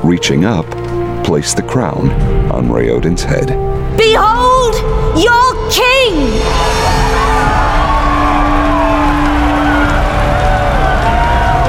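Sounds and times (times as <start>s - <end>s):
speech: 0.0s - 6.7s
large crowd cheering: 6.3s - 11.6s.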